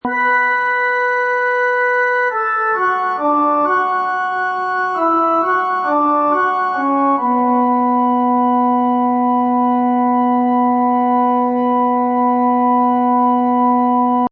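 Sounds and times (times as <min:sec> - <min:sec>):
pipe organ horror loop in B minor: 0:00.0 - 0:14.2.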